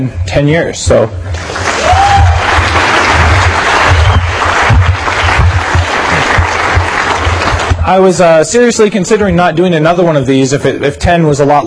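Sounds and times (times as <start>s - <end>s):
speech: 0.0s - 1.7s, 7.9s - 11.6s
crowd applause: 1.3s - 7.8s.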